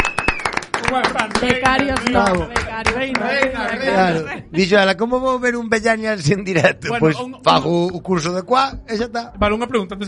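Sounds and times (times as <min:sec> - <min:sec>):
applause: 0:00.0 - 0:03.8
speech: 0:00.9 - 0:10.0.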